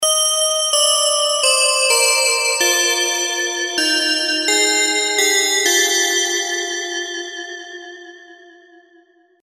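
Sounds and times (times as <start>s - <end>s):
bells ringing: 0.0s - 6.8s.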